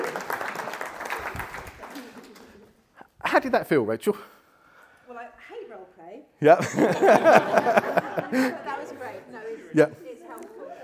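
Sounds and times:
audience clapping: 0:00.0 - 0:02.8
speech: 0:03.3 - 0:04.4, 0:06.1 - 0:10.0
laughter: 0:06.6 - 0:09.8.

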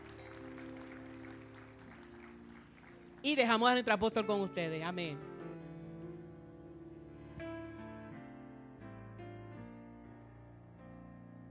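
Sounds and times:
audience applauding: 0:00.0 - 0:03.6
speech: 0:03.2 - 0:05.3.

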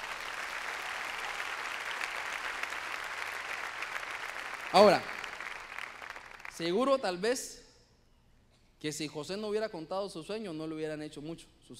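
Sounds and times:
audience clapping: 0:00.0 - 0:06.9
speech: 0:04.7 - 0:05.1, 0:06.6 - 0:07.6, 0:08.8 - 0:11.7.

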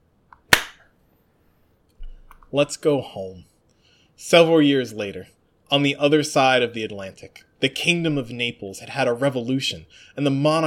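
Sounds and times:
hand clap: 0:00.4 - 0:00.9
speech: 0:02.5 - 0:03.5, 0:04.2 - 0:10.6.

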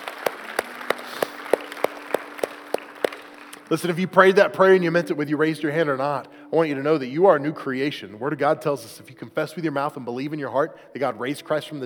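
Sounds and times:
audience round of applause: 0:00.0 - 0:03.7
speech: 0:03.7 - 0:11.8.

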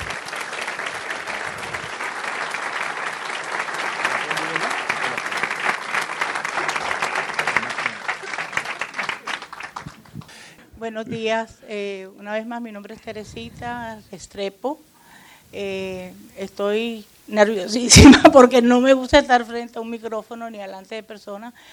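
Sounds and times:
loud audience applause: 0:00.0 - 0:10.4
laughter: 0:06.6 - 0:10.0
speech: 0:10.8 - 0:14.9, 0:15.5 - 0:21.7.

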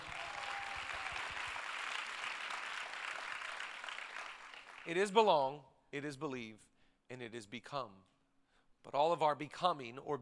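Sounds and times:
audience clapping: 0:00.0 - 0:05.0
speech: 0:04.8 - 0:08.1, 0:08.8 - 0:10.1.

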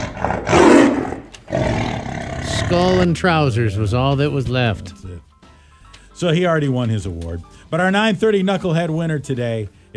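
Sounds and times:
lion roaring: 0:00.0 - 0:03.2
speech: 0:02.7 - 0:05.3, 0:06.2 - 0:09.9.

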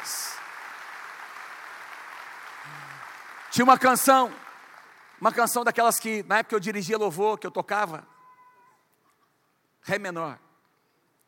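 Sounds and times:
audience applauding: 0:00.0 - 0:05.6
speech: 0:02.7 - 0:04.4, 0:05.2 - 0:08.1, 0:09.8 - 0:10.4.

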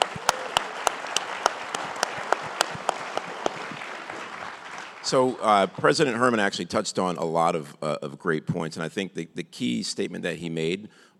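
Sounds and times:
audience applause: 0:00.0 - 0:05.9
speech: 0:05.1 - 0:11.1.

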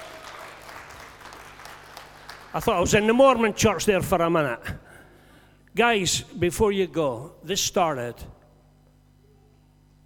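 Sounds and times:
audience clapping: 0:00.0 - 0:03.5
speech: 0:02.5 - 0:04.8, 0:05.8 - 0:08.4.

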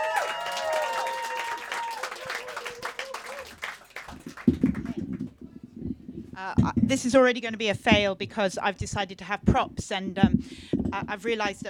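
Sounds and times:
live audience clapping at a performance show: 0:00.0 - 0:05.4
speech: 0:06.4 - 0:11.6.

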